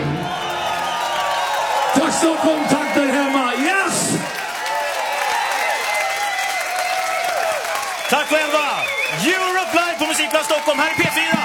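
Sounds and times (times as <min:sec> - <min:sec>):
audience applause: 0:00.0 - 0:11.4
speech: 0:02.0 - 0:03.4, 0:08.3 - 0:11.4.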